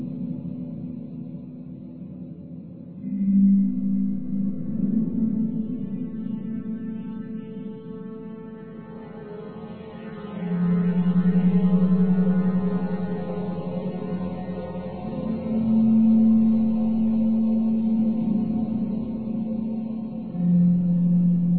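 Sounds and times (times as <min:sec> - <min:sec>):
drone: 0:03.0 - 0:21.5.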